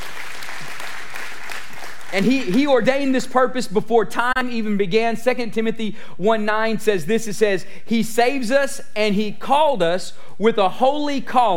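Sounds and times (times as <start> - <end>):
audience clapping hands in praise: 0.0 - 3.1
speech: 2.1 - 11.5.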